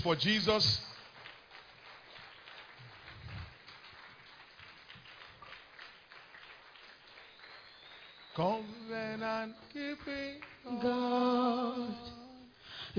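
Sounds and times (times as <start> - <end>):
speech: 0.0 - 0.9, 8.4 - 12.2
audience applause in a church service: 0.4 - 9.3.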